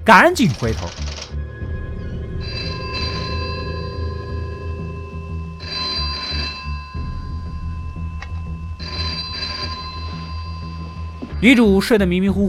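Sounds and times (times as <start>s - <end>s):
speech: 0.0s - 1.1s, 11.4s - 12.4s
telephone ringing: 2.0s - 11.3s.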